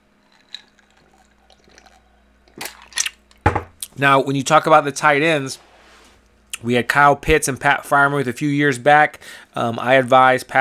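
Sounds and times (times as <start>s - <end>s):
person sipping and swallowing a beverage: 0.3s - 3.9s
speech: 4.0s - 5.7s, 6.6s - 10.5s.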